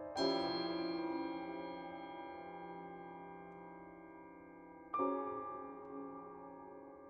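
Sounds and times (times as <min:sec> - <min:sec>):
bells: 0:00.2 - 0:06.8.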